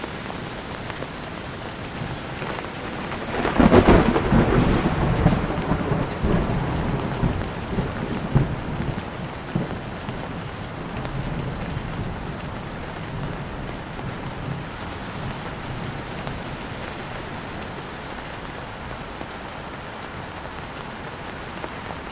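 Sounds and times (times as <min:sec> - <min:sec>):
thunderstorm: 0:01.8 - 0:19.0.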